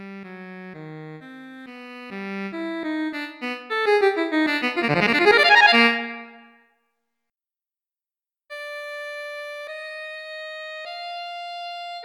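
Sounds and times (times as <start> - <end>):
MIDI music: 1.2 - 6.6.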